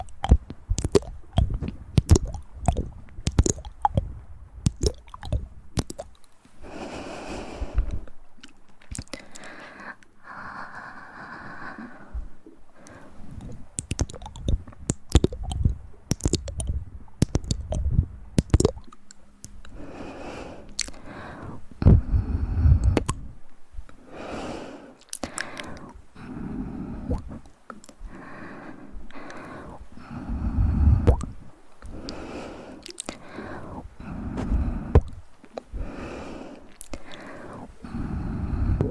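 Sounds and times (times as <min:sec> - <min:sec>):
wet mouth clicks and smacks: 0:00.0 - 0:06.3, 0:07.8 - 0:09.5, 0:12.8 - 0:19.8, 0:20.7 - 0:23.3, 0:25.0 - 0:26.3, 0:27.0 - 0:28.2, 0:29.1 - 0:38.8.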